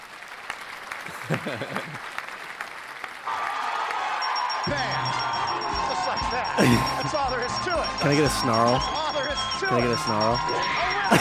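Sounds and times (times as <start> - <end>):
applause sound effect: 0.0 - 6.8
laughter: 1.0 - 2.2, 3.3 - 11.2
speech: 1.2 - 2.2, 4.7 - 5.3, 6.1 - 11.2.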